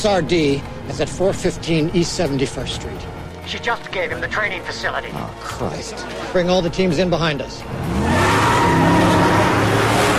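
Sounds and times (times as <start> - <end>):
speech: 0.0 - 8.2
cars racing through city traffic in a chase: 7.3 - 10.1.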